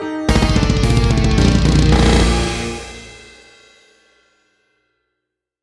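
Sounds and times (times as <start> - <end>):
instrumental music: 0.3 - 3.5.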